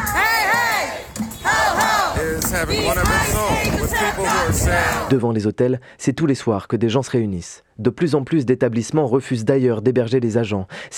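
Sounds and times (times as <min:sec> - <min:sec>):
protest crowd chanting: 0:00.0 - 0:05.1
speech: 0:02.5 - 0:10.9.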